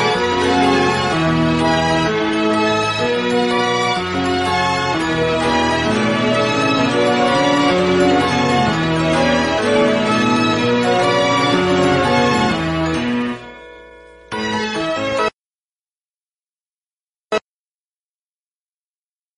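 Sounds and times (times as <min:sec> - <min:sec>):
instrumental music: 0:00.0 - 0:15.3.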